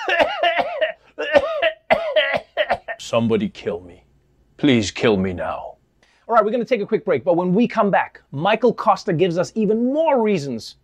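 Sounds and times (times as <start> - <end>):
person coughing: 0.0 - 3.0
speech: 3.1 - 4.0, 4.6 - 5.7, 6.3 - 10.8.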